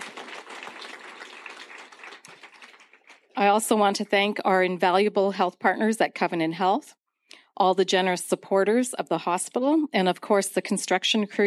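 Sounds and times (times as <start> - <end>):
audience applause: 0.0 - 3.4
speech: 3.4 - 7.0, 7.6 - 11.4.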